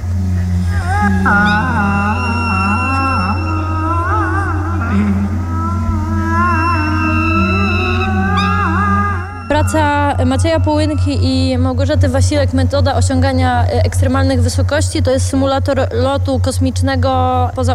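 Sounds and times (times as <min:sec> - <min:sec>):
pushed soft art object making moaning sounds: 0:00.0 - 0:11.7
speech: 0:01.0 - 0:01.7, 0:09.6 - 0:17.7.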